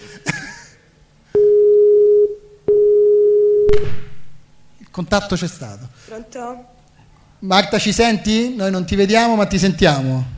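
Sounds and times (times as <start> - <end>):
phone busy tone after a dropped call: 1.4 - 3.8
speech: 5.0 - 6.8, 7.4 - 10.3.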